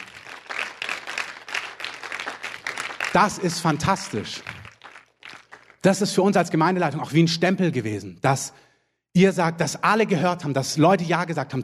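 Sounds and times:
audience applause: 0.0 - 5.8
speech: 3.1 - 4.6, 5.8 - 8.6, 9.2 - 11.6.

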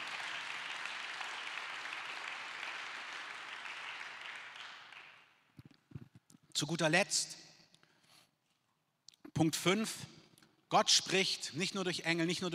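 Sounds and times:
audience applause: 0.0 - 5.2
speech: 6.6 - 7.4, 9.4 - 12.5.

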